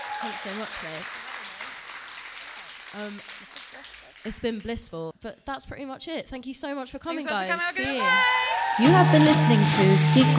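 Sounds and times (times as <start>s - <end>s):
round of applause: 0.0s - 4.7s, 8.2s - 10.3s
speech: 0.2s - 1.3s, 2.9s - 10.3s.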